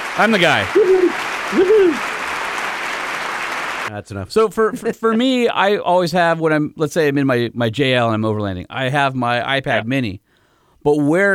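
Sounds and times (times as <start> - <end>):
audience clapping: 0.0 - 3.9
speech: 0.2 - 2.1, 3.9 - 10.2, 10.8 - 11.3.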